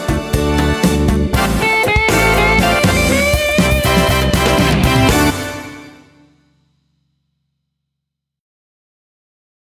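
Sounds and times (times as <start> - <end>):
karaoke singing: 0.0 - 5.8.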